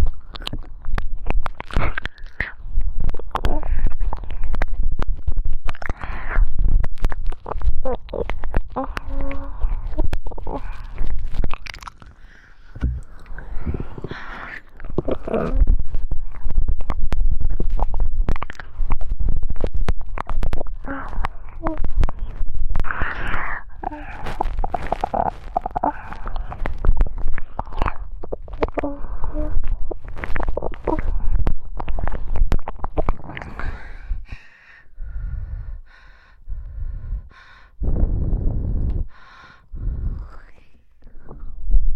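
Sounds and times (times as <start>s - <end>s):
wet close-up ear licking and saliva sounds: 0.0s - 34.4s
breathy panting: 33.5s - 40.3s.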